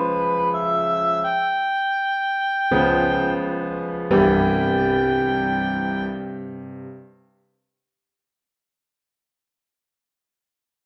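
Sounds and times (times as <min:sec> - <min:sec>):
oboe: 0:00.0 - 0:06.5.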